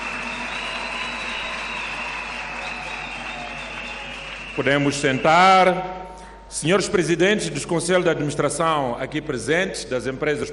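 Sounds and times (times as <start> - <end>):
audience applause: 0.0 - 5.3
speech: 4.6 - 10.5.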